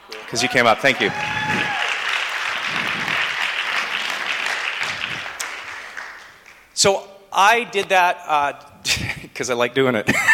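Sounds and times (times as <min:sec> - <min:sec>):
audience applauding for a performer on stage: 0:00.0 - 0:06.8
speech: 0:00.3 - 0:01.6, 0:06.8 - 0:10.3.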